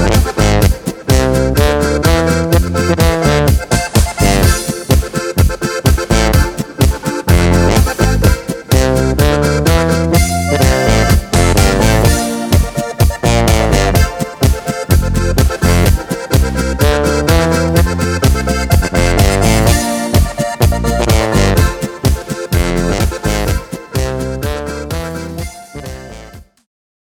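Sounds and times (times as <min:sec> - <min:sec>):
music in G C F B without harmonica lead and without choir: 0:00.0 - 0:26.7.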